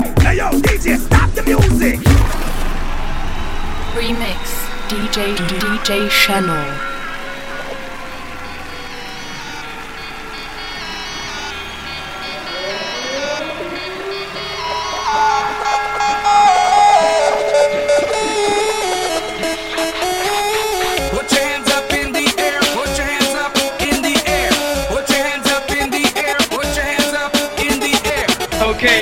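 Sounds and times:
rumba party music: 0:00.0 - 0:29.0
crash: 0:02.0 - 0:03.9.

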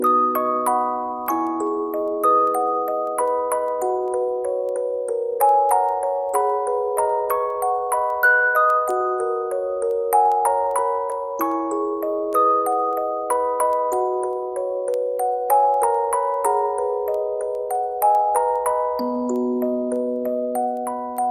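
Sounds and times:
music box: 0:00.0 - 0:21.3.

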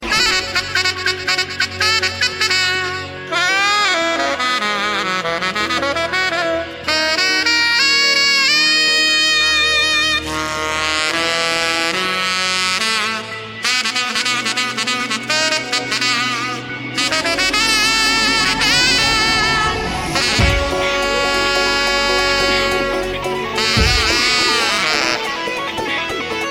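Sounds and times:
saxophone: 0:00.0 - 0:26.4.

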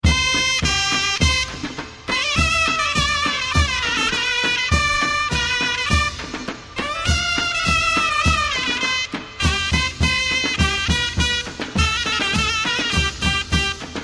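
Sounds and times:
Mehter military march trap beat: 0:00.0 - 0:14.0.

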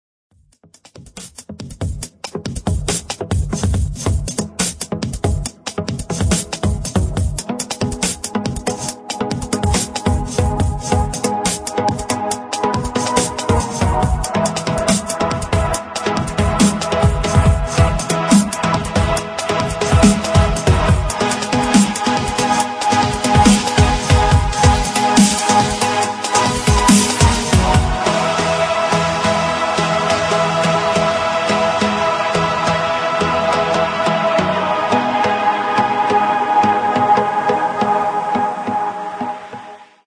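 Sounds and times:
intense dubstep music: 0:00.8 - 0:39.7.

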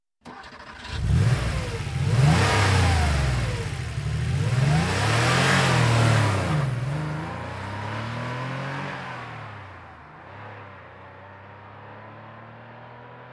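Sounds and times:
Porsche engine starting: 0:00.2 - 0:10.0.

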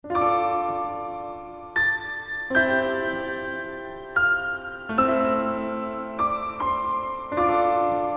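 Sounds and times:
slow music: 0:00.0 - 0:08.1.

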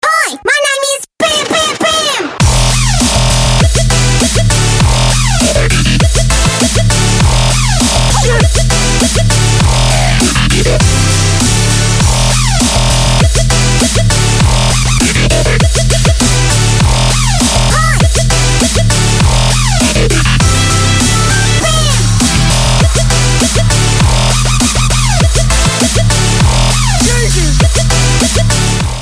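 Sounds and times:
dubstep music: 0:01.2 - 0:29.0.

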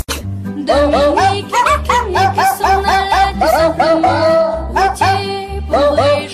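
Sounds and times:
dog singing: 0:00.6 - 0:06.3.

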